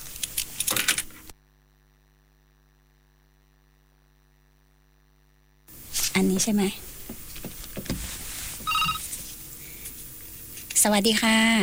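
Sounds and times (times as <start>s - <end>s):
speech: 6.2s - 6.9s, 10.8s - 11.6s
telephone ringing with electronic tones: 8.6s - 9.2s.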